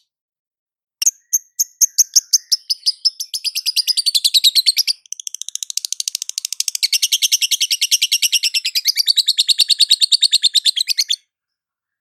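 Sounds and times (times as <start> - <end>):
lovebird calling: 1.0 - 11.2.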